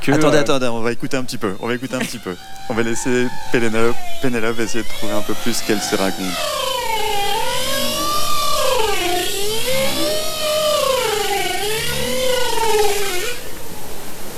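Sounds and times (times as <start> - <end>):
laughter: 0.0 - 0.7, 1.3 - 6.1
speech: 0.0 - 7.0
bowhead whales calling underwater: 1.3 - 13.9.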